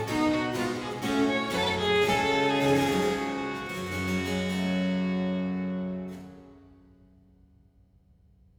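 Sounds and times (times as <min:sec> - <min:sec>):
violin and basso continuo sonata in G minor, allegro movement: 0:00.0 - 0:06.6.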